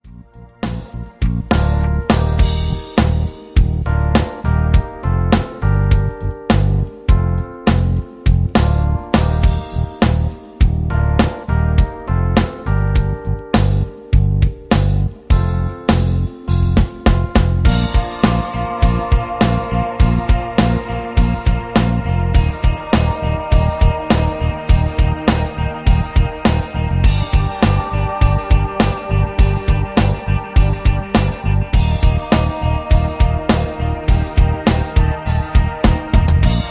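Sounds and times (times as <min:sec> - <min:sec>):
rhythm: 0:00.0 - 0:36.6.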